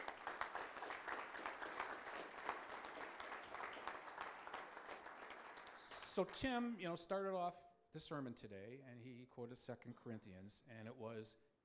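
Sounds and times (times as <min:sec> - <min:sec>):
audience applause: 0:00.0 - 0:06.5
speech: 0:06.2 - 0:11.5.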